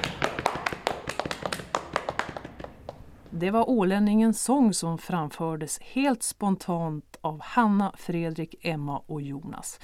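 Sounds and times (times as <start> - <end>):
audience applause after a song: 0.0 - 3.0
speech: 3.4 - 9.8.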